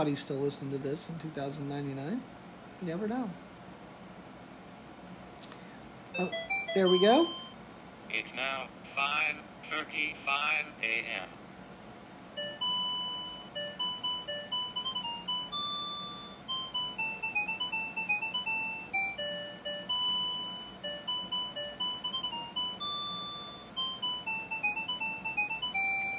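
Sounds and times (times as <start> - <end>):
speech: 0.0 - 3.4, 6.2 - 7.4, 8.1 - 11.4
digital alarm clock chiming electronic melody: 6.2 - 7.6, 12.4 - 26.1.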